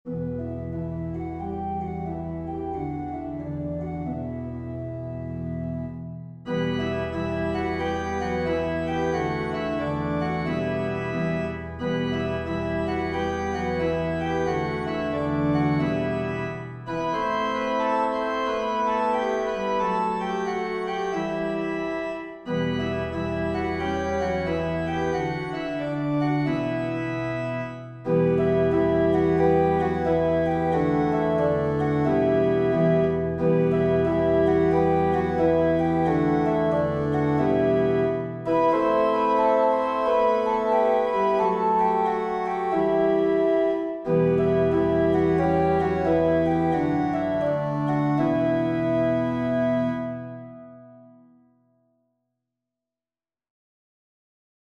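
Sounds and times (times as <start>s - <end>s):
organ: 0.1s - 51.0s.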